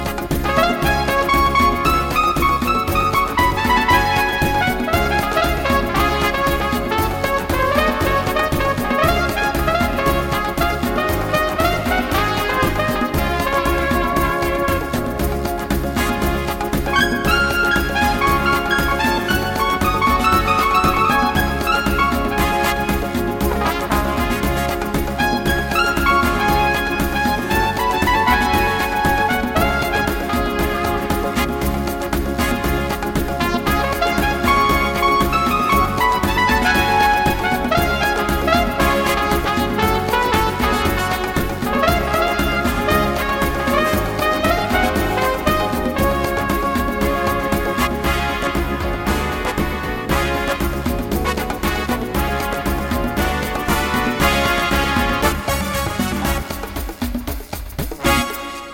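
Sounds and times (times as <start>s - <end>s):
paso doble dance music: 0.0s - 58.7s.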